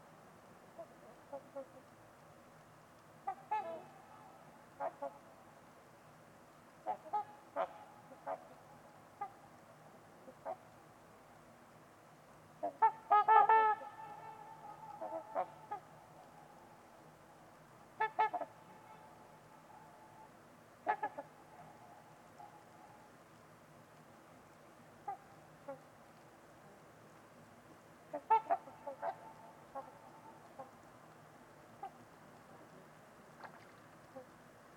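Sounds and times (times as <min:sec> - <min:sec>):
low background hiss: 0:00.0 - 0:34.7
trumpeter swans honking: 0:03.2 - 0:05.3, 0:06.8 - 0:09.5, 0:12.6 - 0:16.8, 0:18.0 - 0:23.0, 0:28.1 - 0:30.8, 0:31.8 - 0:32.1.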